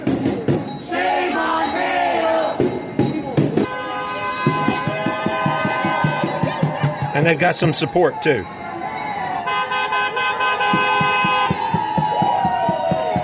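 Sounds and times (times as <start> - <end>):
large crowd of marchers shouting and chanting in the street: 0.0 - 13.2
horn-like tones: 3.7 - 7.6, 9.4 - 11.7
speech: 7.2 - 8.6.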